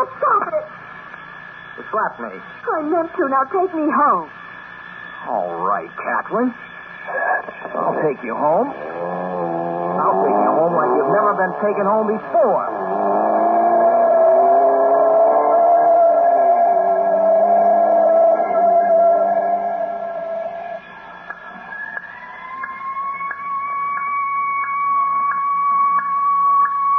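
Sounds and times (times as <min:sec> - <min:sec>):
speech: 0:01.8 - 0:04.4, 0:05.2 - 0:09.2, 0:10.0 - 0:12.8
ambulance siren: 0:08.4 - 0:26.9.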